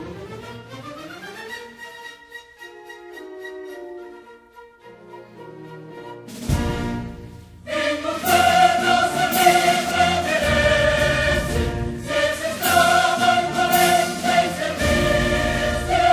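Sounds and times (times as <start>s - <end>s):
choir singing a national anthem: 6.8s - 16.1s.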